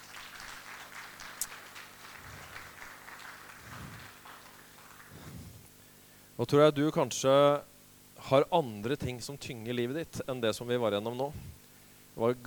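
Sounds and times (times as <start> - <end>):
audience applause: 0.0 - 5.3
low rumbling crowd noise: 0.0 - 5.6
speech: 6.4 - 11.5, 12.2 - 12.4.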